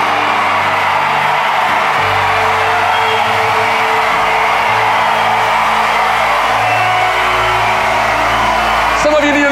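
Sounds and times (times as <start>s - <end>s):
crowd cheering: 0.0s - 9.5s.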